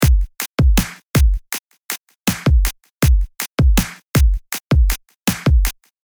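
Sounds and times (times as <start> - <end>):
drum: 0.0 - 1.6, 2.3 - 5.9.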